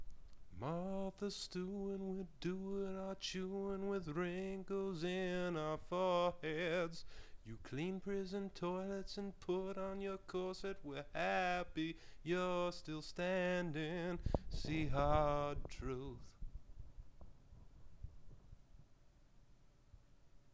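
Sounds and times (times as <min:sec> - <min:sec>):
vocals: 0:00.4 - 0:16.6.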